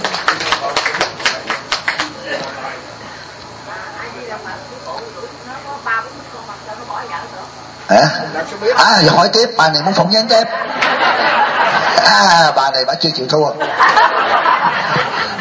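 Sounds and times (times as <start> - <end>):
audience clapping: 0.0 - 2.4, 10.8 - 11.0
laughter: 0.0 - 3.4, 10.1 - 15.3
speech: 7.9 - 14.2.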